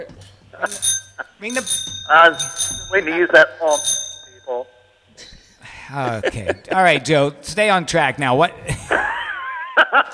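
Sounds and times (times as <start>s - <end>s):
speech: 0.0s - 4.6s, 5.9s - 9.1s
bell dinging: 0.6s - 4.9s.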